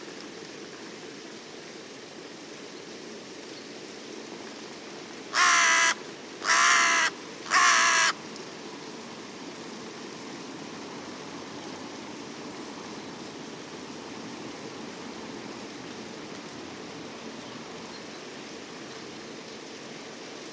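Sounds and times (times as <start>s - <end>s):
bird cawing: 5.3s - 8.2s.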